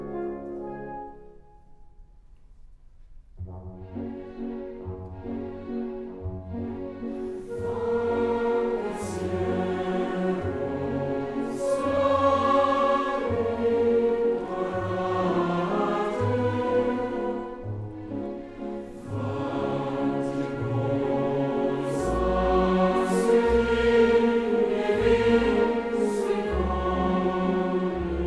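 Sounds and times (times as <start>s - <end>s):
orchestra: 0.0s - 28.2s
choir: 7.2s - 28.2s.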